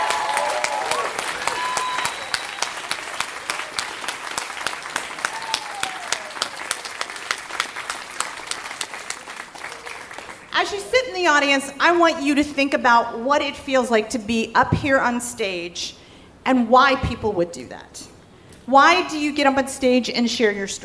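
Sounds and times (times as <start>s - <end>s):
theatre audience applause: 0.0s - 10.5s
speech: 11.2s - 18.0s, 18.7s - 20.8s.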